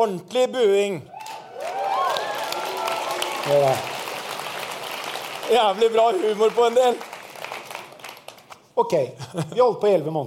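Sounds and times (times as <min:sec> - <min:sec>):
speech: 0:00.0 - 0:01.2, 0:03.4 - 0:03.9, 0:05.5 - 0:07.1, 0:08.8 - 0:10.2
audience clapping: 0:01.2 - 0:08.7.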